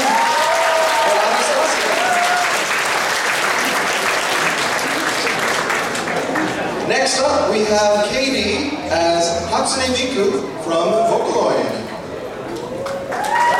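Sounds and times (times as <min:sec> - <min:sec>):
round of applause: 0:00.0 - 0:06.8, 0:12.5 - 0:13.5
speech: 0:07.6 - 0:11.8.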